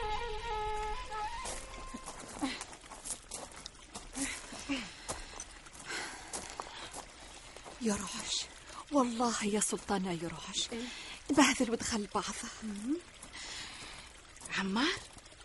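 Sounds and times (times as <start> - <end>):
horse hooves clip-clopping: 0.1 - 7.8
speech: 7.9 - 8.3, 8.9 - 13.2, 14.6 - 15.1.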